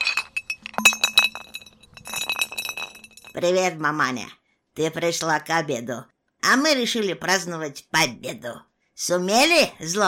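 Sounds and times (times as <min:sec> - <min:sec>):
bottles clinking in a backpack: 0:00.0 - 0:03.4
speech: 0:03.4 - 0:10.0.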